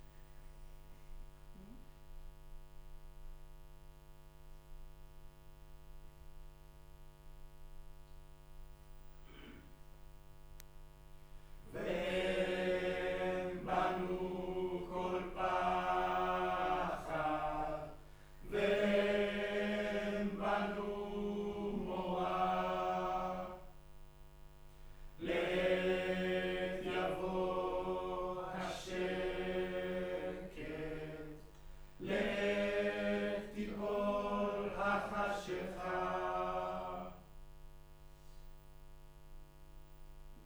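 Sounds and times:
choir singing in room: 11.7 - 23.7, 25.2 - 37.2.

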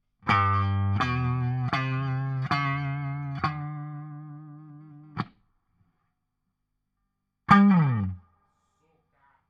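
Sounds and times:
guitar solo: 0.2 - 5.3, 7.5 - 8.2.

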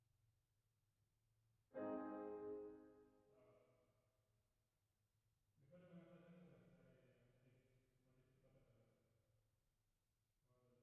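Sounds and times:
piano: 1.8 - 3.5.

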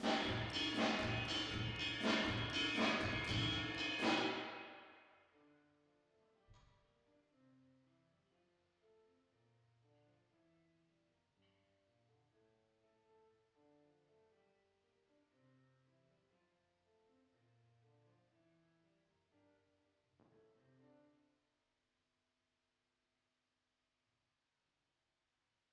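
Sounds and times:
drums with reverb: 0.0 - 5.0.

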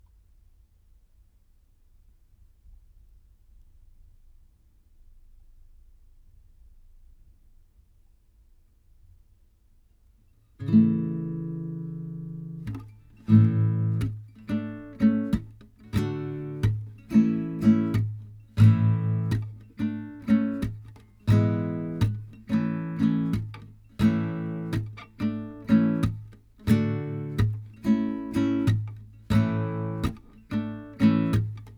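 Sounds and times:
guitar through tape: 10.6 - 31.7.

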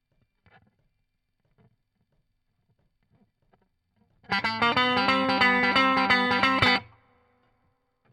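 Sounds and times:
guitar solo: 4.3 - 7.0.

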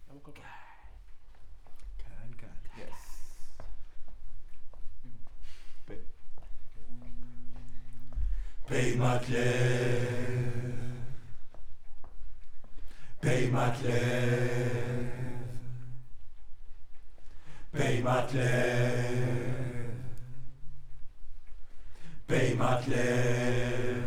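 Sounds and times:
choir singing: 8.7 - 11.5, 13.2 - 16.2, 17.6 - 20.8, 22.1 - 24.0.

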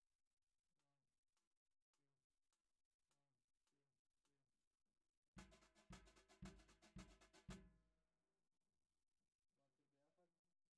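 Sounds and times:
bottom snare drum: 5.4 - 7.7.

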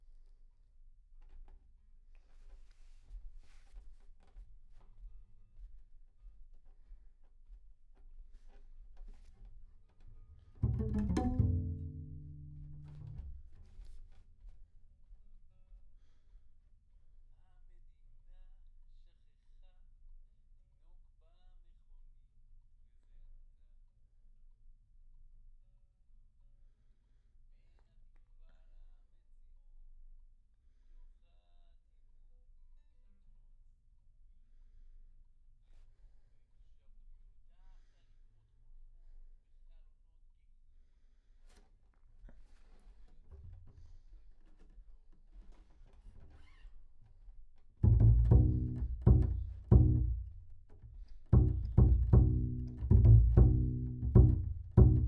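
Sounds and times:
bass: 10.2 - 13.9, 47.8 - 55.0.

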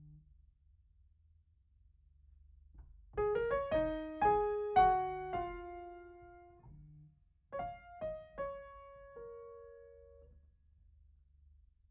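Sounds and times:
piano: 3.2 - 6.9, 7.5 - 10.4.

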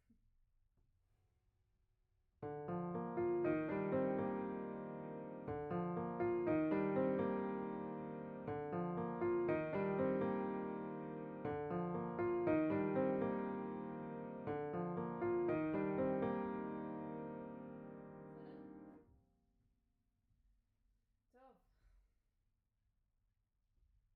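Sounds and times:
piano note B: 2.4 - 19.0.

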